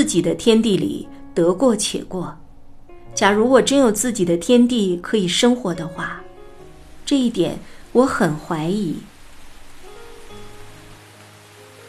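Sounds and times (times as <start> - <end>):
speech: 0.0 - 2.4, 3.2 - 6.2, 7.1 - 9.1
heavy rain pouring: 5.7 - 11.8.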